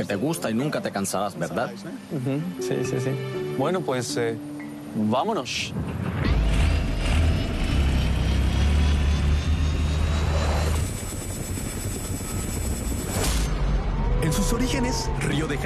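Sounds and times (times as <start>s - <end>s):
speech: 0.0s - 6.0s, 14.5s - 15.6s
helicopter in flight: 6.3s - 14.2s.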